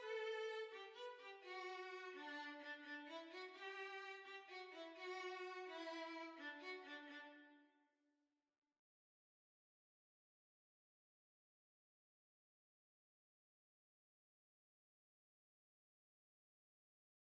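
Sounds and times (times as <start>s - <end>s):
violin: 0.0s - 7.7s.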